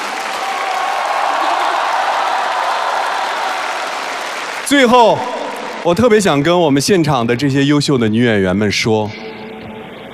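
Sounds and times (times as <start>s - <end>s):
audience applause: 0.0s - 6.0s
speech: 4.7s - 9.2s.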